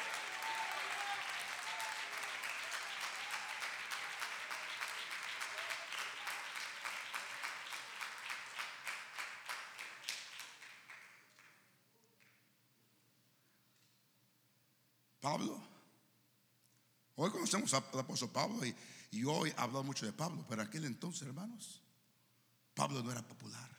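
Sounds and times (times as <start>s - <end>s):
crowd applauding: 0.0s - 12.4s
speech: 15.2s - 15.7s, 17.2s - 21.8s, 22.8s - 23.7s.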